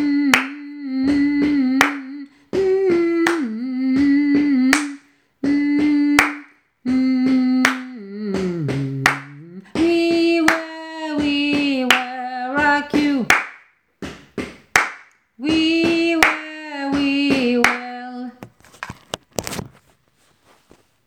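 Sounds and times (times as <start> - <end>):
soprano voice: 0.0 - 13.4, 15.4 - 18.5.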